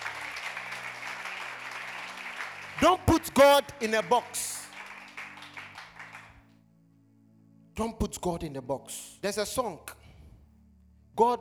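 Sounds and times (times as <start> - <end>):
people clapping: 0.0 - 6.4
speech: 2.8 - 4.5, 7.8 - 9.9, 11.2 - 11.3.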